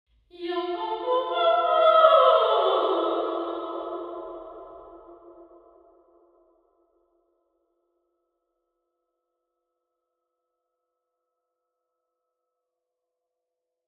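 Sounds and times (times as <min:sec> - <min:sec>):
person singing in a nuclear reactor hall: 0:00.3 - 0:05.1.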